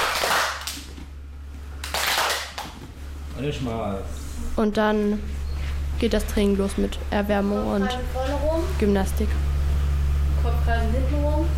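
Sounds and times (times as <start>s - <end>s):
several people clapping hands: 0.0s - 1.1s, 1.8s - 2.9s
steady low hum: 0.0s - 11.5s
speech: 3.4s - 5.4s, 6.0s - 9.5s, 10.4s - 11.5s.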